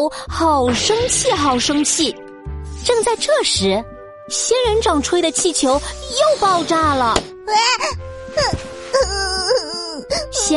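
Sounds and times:
speech: 0.0 - 2.2, 2.8 - 10.5
person wailing and sobbing in theatrical crying: 7.5 - 10.5.

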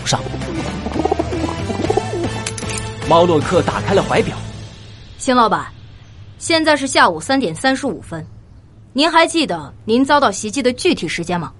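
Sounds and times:
speech: 0.1 - 1.1, 3.1 - 4.5, 5.2 - 5.8, 6.4 - 8.4, 9.0 - 11.5
pigeon cooing: 0.2 - 2.4.

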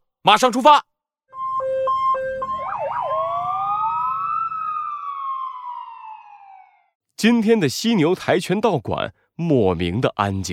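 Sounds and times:
speech: 0.2 - 0.9, 7.2 - 10.5
alarm siren ringing: 1.3 - 7.0.

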